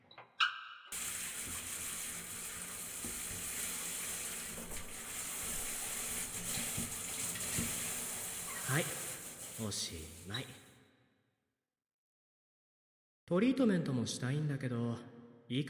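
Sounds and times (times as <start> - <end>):
water rinsing shampoo out of hair: 0.9 - 10.6
speech: 8.7 - 9.0, 9.6 - 10.6, 13.3 - 15.6.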